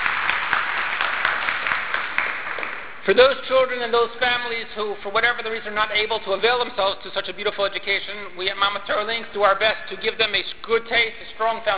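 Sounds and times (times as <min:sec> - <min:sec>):
audience applause at a Jewish school celebration: 0:00.0 - 0:03.0
speech: 0:03.1 - 0:11.7.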